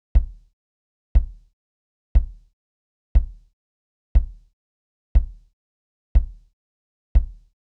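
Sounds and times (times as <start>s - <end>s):
kick drum: 0.1s - 0.5s, 1.2s - 1.5s, 2.2s - 2.5s, 3.2s - 3.5s, 4.2s - 4.5s, 5.2s - 5.5s, 6.2s - 6.5s, 7.2s - 7.6s.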